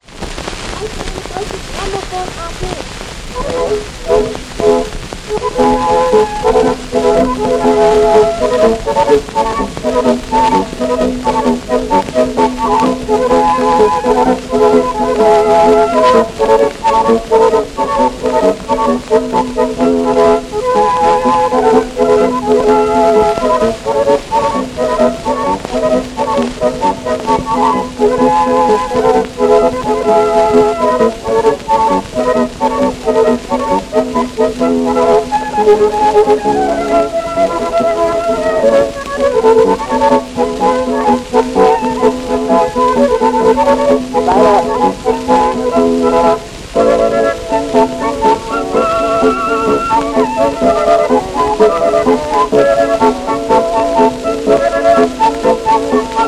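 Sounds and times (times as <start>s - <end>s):
polka music: 0.3s - 56.2s.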